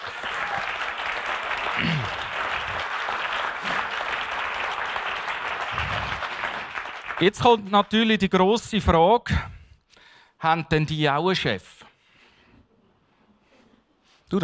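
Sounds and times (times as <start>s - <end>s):
audience applause: 0.0s - 7.9s
speech: 7.2s - 9.5s, 10.4s - 11.7s, 14.3s - 14.4s.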